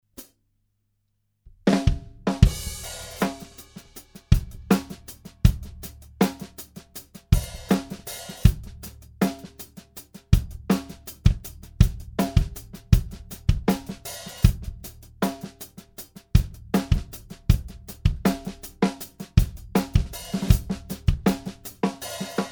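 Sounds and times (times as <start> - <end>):
drum test: 1.6 - 22.5.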